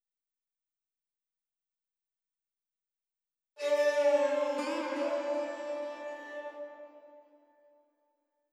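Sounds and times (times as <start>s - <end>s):
ethnic music: 3.6s - 7.4s.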